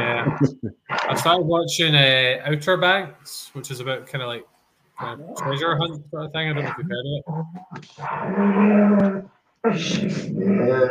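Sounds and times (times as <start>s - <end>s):
dogs growling while play-fighting: 0.0s - 1.5s, 5.0s - 10.9s
speech: 0.2s - 10.9s.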